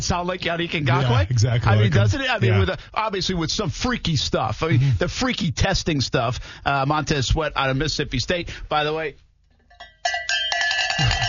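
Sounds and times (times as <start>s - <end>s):
speech: 0.0s - 9.2s, 11.0s - 11.2s
bell ringing: 9.7s - 11.2s.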